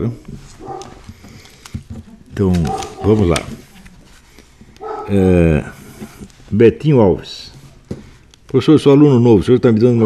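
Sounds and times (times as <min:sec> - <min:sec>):
speech: 0:00.0 - 0:00.4, 0:02.4 - 0:03.6, 0:05.1 - 0:05.8, 0:06.5 - 0:07.5, 0:08.5 - 0:10.0
small dog barking: 0:00.6 - 0:01.0, 0:04.8 - 0:05.2.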